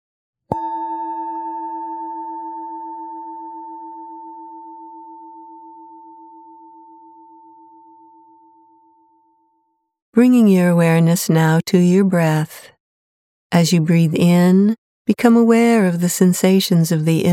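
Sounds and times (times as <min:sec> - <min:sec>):
meditation bell ringing: 0:00.5 - 0:09.9
speech: 0:10.2 - 0:12.7, 0:13.6 - 0:17.3.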